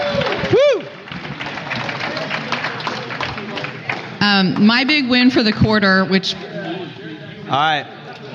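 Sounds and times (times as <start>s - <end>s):
crowd applause: 0.0s - 4.2s
speech: 4.2s - 6.5s, 7.5s - 8.0s.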